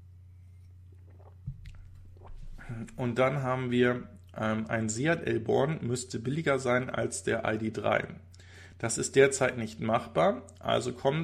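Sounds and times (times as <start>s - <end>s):
steady low hum: 0.0s - 11.2s
sipping coffee: 0.6s - 3.0s
speech: 2.7s - 11.2s.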